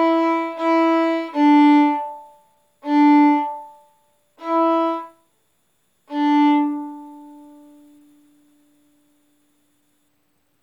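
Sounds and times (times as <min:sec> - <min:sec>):
violin played arco: 0:00.0 - 0:03.8, 0:04.4 - 0:05.2, 0:06.1 - 0:08.0.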